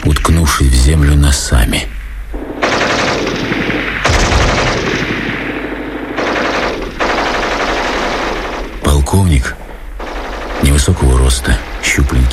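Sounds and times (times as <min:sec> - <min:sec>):
speech: 0:00.1 - 0:02.0, 0:09.1 - 0:09.6, 0:10.6 - 0:12.3
gunfire: 0:02.4 - 0:08.9, 0:09.7 - 0:12.3.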